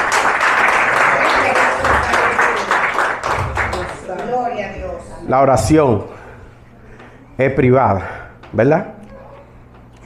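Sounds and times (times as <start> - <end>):
loud sustained audience applause: 0.0 - 4.2
speech: 5.3 - 6.2, 7.4 - 9.0.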